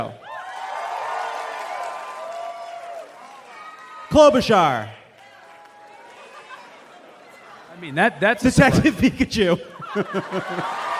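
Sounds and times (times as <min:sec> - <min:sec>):
speech: 0:00.0 - 0:00.2, 0:04.1 - 0:05.0, 0:07.8 - 0:10.8
whoops and cheers: 0:00.1 - 0:04.2, 0:05.2 - 0:06.6
crowd applauding: 0:00.2 - 0:08.0, 0:10.2 - 0:10.9
laughter: 0:06.0 - 0:10.9.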